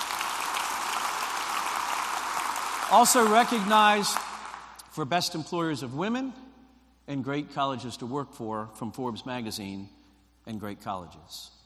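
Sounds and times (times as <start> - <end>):
audience applause celebrating a university's top employer ranking in Kansas: 0.0 - 4.8
speech: 2.9 - 4.3, 5.0 - 6.4, 7.1 - 11.6.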